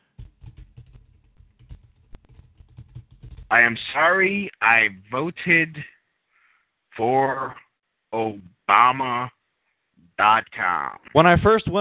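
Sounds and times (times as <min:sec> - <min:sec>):
typing on a computer keyboard: 0:00.0 - 0:03.5
speech: 0:03.5 - 0:06.0, 0:07.0 - 0:09.4, 0:10.2 - 0:11.8.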